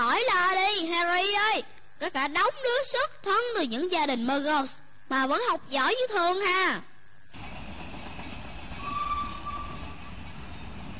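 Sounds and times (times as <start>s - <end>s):
thin high whine: 0.0s - 10.9s
speech: 1.6s - 7.4s
train speeding through fields after leaving London: 7.3s - 10.9s.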